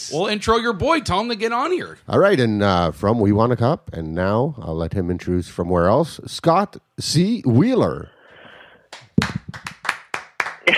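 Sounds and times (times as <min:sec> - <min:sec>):
speech: 0:00.0 - 0:08.2
round of applause: 0:08.9 - 0:10.7.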